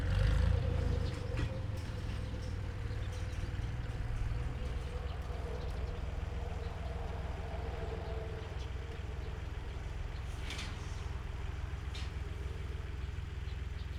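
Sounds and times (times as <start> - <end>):
tractor at a railway crossing in Perkupa: 0.0 - 13.9.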